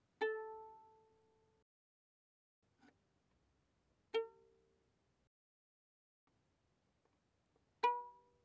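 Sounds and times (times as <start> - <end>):
soft violin pizzicato on the A string: 0.2 - 1.2, 4.1 - 4.6, 7.8 - 8.4.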